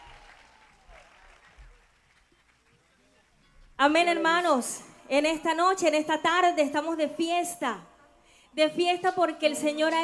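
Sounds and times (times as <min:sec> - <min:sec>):
audience applauding: 0:00.0 - 0:03.3
speech: 0:03.8 - 0:07.9, 0:08.5 - 0:10.0.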